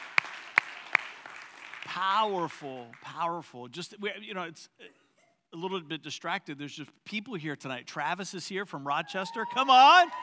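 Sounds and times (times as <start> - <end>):
audience applause: 0.0 - 2.0
speech: 1.9 - 10.2.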